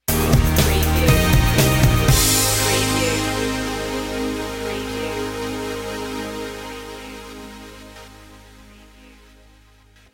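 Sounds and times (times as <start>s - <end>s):
music stinger: 0.0s - 10.1s.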